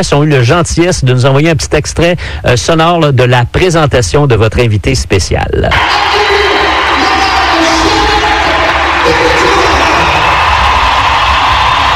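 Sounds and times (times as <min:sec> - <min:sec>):
speech: 0:00.0 - 0:06.5, 0:09.1 - 0:09.6
crowd ovation at a hockey game: 0:05.7 - 0:11.9.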